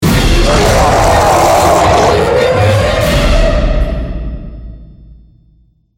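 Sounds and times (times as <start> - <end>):
large zombie stinger: 0.0 - 3.4.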